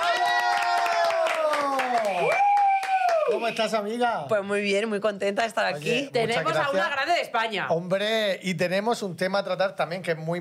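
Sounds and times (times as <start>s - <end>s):
audience applause: 0.0s - 3.7s
speech: 3.3s - 10.3s.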